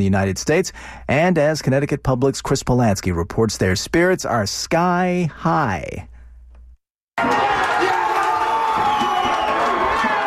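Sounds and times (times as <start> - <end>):
speech: 0.0 - 6.1
crowd at the Cape Verdean Association of Bridgeport erupting in cheers: 7.2 - 10.2.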